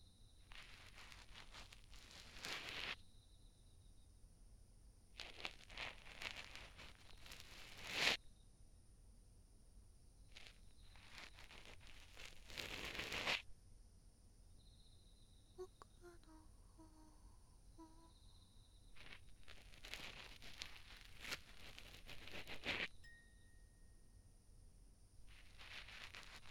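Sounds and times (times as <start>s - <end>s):
cotton swab asmr: 0.5s - 3.0s, 5.2s - 8.2s, 10.4s - 13.5s, 15.6s - 22.9s, 25.3s - 26.5s.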